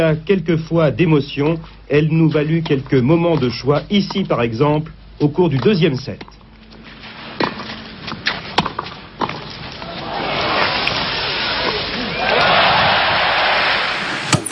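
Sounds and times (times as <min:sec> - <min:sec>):
speech: 0:00.0 - 0:06.3
tennis ball strikes: 0:07.4 - 0:09.5
crowd cheering and applauding at a tennis final: 0:09.8 - 0:14.4.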